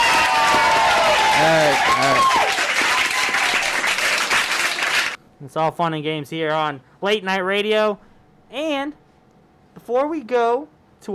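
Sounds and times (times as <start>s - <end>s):
person cheering: 0.0s - 4.9s
audience applause: 0.0s - 5.2s
speech: 1.4s - 2.6s, 5.4s - 9.0s, 9.8s - 11.1s.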